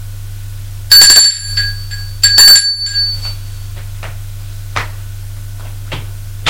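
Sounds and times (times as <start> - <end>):
steady low hum: 0.0 - 6.4
doorbell chiming: 0.9 - 3.7.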